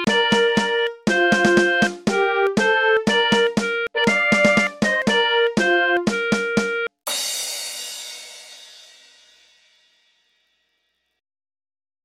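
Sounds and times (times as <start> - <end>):
national anthem in MIDI: 0.0 - 7.6.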